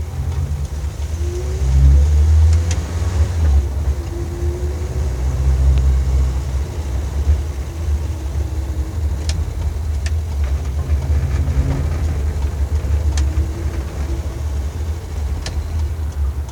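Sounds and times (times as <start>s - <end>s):
Renault 4 setting off: 0.0s - 16.5s.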